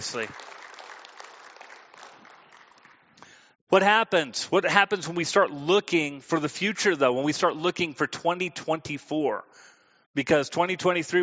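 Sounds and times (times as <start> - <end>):
speech: 0.0 - 0.5, 3.7 - 11.2
large crowd applause: 0.0 - 3.1.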